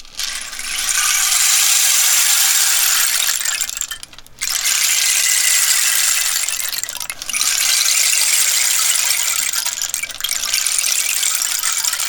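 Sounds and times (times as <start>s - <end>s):
rain stick being turned over, pattering beads: 0.0s - 12.0s.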